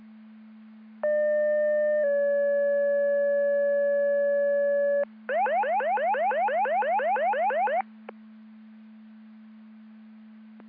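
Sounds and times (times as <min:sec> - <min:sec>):
siren: 0:01.0 - 0:07.9.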